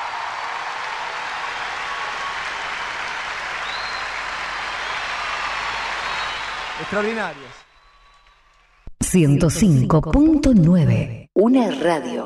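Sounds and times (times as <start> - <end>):
audience applause: 0.0 - 8.6
speech: 6.8 - 7.6, 9.1 - 12.2.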